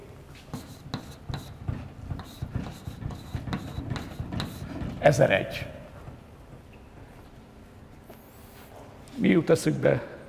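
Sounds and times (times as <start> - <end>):
handwriting during a lesson: 0.5 - 5.0
speech: 5.0 - 5.8, 9.2 - 10.1.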